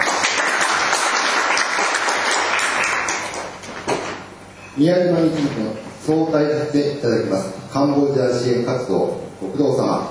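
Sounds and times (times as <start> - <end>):
audience applause: 0.0 - 3.6
speech: 4.8 - 10.1.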